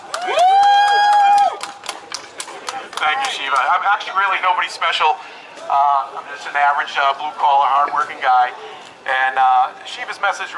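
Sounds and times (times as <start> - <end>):
audience cheering: 0.0 - 1.8
audience clapping: 0.0 - 3.7
speech: 3.5 - 10.5.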